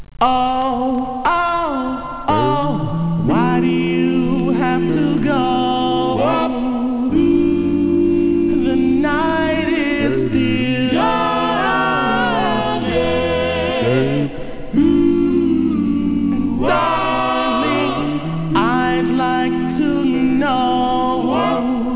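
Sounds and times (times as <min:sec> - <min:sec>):
a cappella singing: 0:00.2 - 0:21.9.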